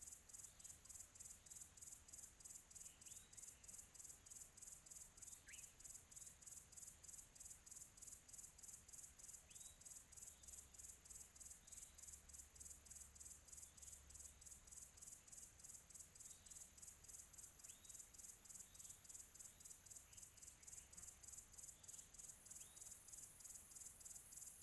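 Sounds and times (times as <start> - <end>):
quiet tropical birds: 0.0 - 24.6.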